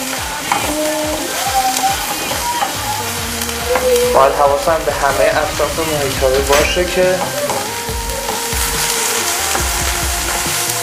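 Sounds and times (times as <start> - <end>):
potato chips frying in hot oil: 0.0 - 3.6, 6.7 - 10.8
speech: 4.2 - 7.4.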